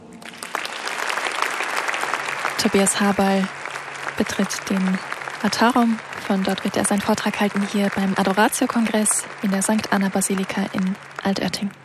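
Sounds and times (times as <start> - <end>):
audience applause: 0.0 - 11.8
speech: 2.6 - 3.6, 4.2 - 11.8.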